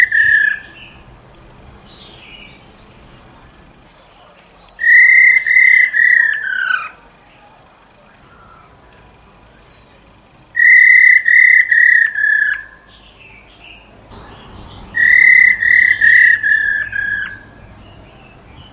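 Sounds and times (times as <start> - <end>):
Black-throated laughingthrush whistling: 0.0 - 1.1, 3.9 - 13.9, 14.9 - 17.7.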